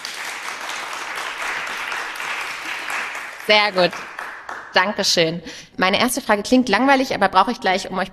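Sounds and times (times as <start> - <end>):
whole room clapping loudly: 0.0 - 5.3
speech: 3.5 - 4.1, 4.7 - 8.1.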